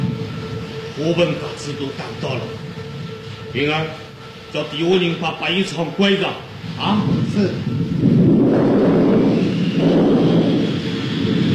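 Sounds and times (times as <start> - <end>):
thunder of an approaching storm: 0.0 - 3.2, 6.5 - 11.5
speech: 1.0 - 2.8, 3.5 - 7.8.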